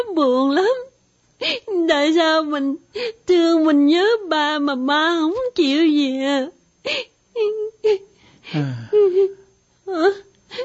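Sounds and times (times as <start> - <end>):
speech: 0.0 - 10.6
grown man sobbing: 8.5 - 9.5.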